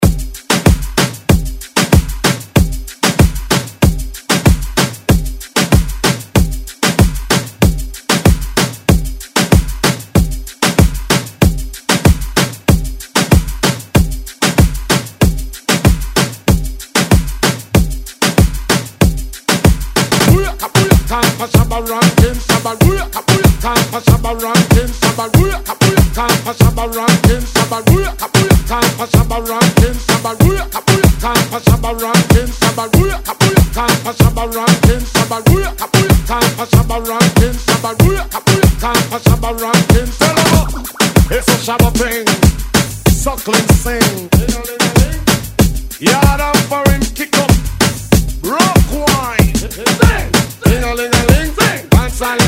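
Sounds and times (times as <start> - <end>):
moombahton music: 0.0 - 52.4.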